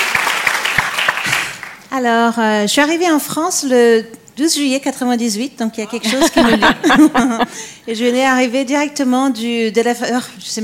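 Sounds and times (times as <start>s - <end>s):
audience applause: 0.0s - 1.8s
speech: 1.9s - 10.6s
laughter: 6.0s - 7.8s.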